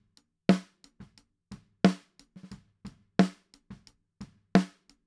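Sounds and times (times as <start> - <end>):
snare drum top hit: 0.5 - 0.7, 1.9 - 2.1, 4.6 - 4.8.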